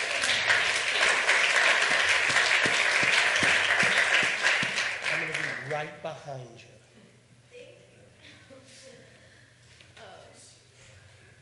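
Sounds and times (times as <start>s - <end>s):
crowd applause: 0.0s - 5.9s.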